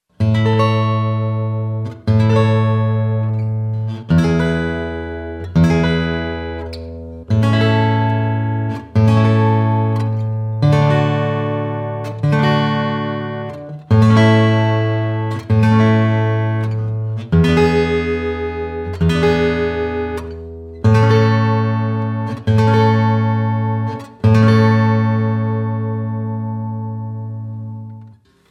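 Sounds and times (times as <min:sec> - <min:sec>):
guitar: 0:00.0 - 0:28.4.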